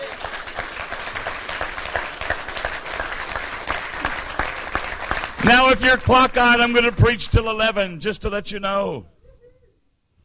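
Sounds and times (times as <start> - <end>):
audience clapping: 0.0 - 7.9
speech: 5.4 - 9.1.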